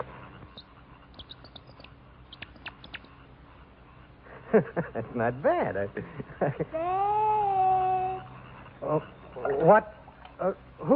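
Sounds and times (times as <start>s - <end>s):
speech: 4.5s - 7.6s, 8.8s - 10.9s
person imitating mockingbird or catbird call: 6.8s - 8.3s.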